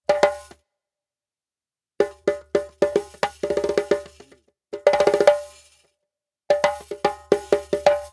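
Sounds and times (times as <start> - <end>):
African djembe: 0.1 - 0.6, 2.0 - 5.6, 6.5 - 8.1.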